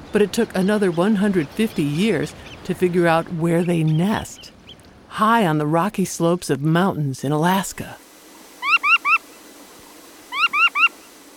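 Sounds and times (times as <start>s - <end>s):
speech: 0.1s - 8.0s
faint steady hiss: 1.3s - 11.3s
surfbird calling: 10.3s - 10.9s.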